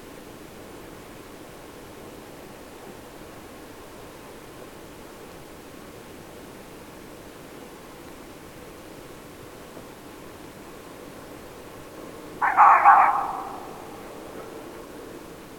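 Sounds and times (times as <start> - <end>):
fox giving a harsh hoarse call: 12.4 - 14.4.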